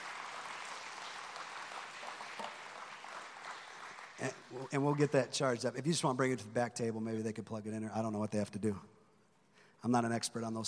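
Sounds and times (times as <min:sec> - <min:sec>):
audience applause: 0:00.0 - 0:05.2
speech: 0:04.2 - 0:08.9, 0:09.8 - 0:10.6.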